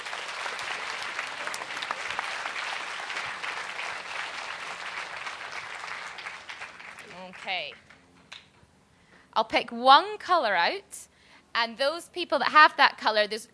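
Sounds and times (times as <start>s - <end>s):
audience applause: 0.0s - 7.8s
speech: 7.4s - 7.9s, 9.4s - 13.5s.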